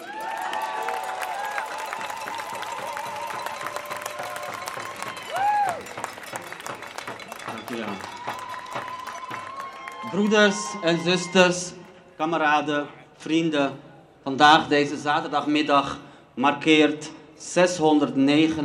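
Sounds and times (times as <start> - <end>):
crowd at a demonstration clapping: 0.0 - 12.0
speech: 7.7 - 8.2, 10.1 - 18.6.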